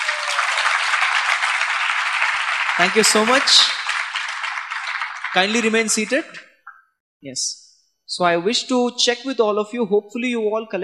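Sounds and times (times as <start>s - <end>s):
audience applause: 0.0s - 6.3s
speech: 2.8s - 3.8s, 5.3s - 6.5s, 7.2s - 10.8s.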